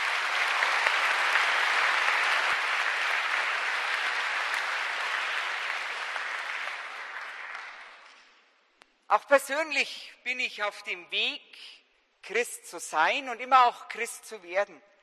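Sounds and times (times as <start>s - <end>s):
audience applause: 0.0s - 8.2s
speech: 9.1s - 14.9s.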